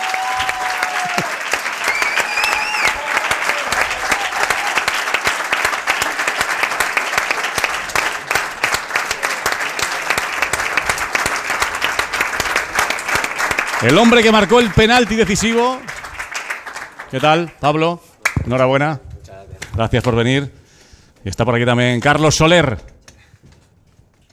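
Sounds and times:
large audience applause: 0.0 - 17.6
speech: 13.8 - 15.9, 17.1 - 19.0, 19.8 - 20.6, 21.2 - 22.9.

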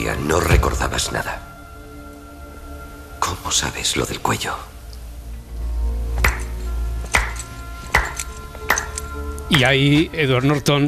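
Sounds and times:
speech: 0.0 - 1.5, 3.3 - 4.7, 9.5 - 10.8
slow sardonic hand claps: 6.2 - 9.4.

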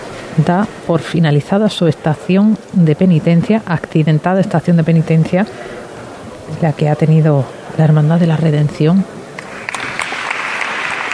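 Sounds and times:
speech: 0.4 - 5.8, 6.5 - 9.2
crowd applauding: 9.4 - 11.1.

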